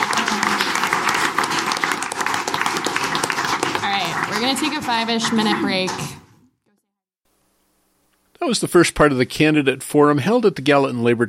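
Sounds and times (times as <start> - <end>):
audience applause: 0.0 - 6.3
speech: 4.4 - 6.2, 8.4 - 11.2.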